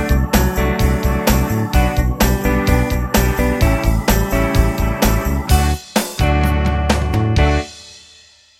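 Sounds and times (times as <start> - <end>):
eight-beat rock drum beat: 0.0 - 8.2.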